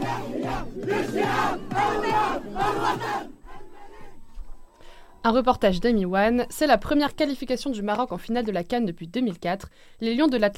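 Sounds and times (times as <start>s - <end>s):
supporters singing national anthem in unison: 0.0s - 4.7s
speech: 5.2s - 10.5s.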